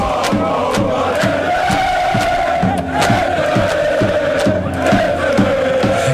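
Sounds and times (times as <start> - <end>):
crowd of football fans chanting and cheering: 0.0 - 6.1
steady rhythmic claps or beats: 0.0 - 6.1.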